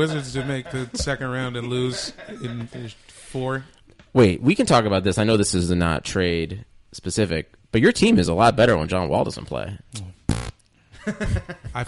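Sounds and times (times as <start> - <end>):
laughter: 0.0 - 2.9, 11.0 - 11.8
speech: 0.0 - 10.2, 11.0 - 11.8
short loud buzzing fart: 10.3 - 10.6.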